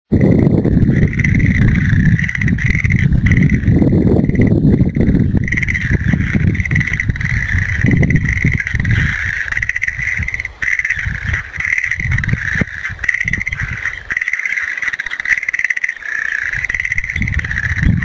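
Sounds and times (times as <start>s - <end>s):
frog calling: 0.1s - 18.0s.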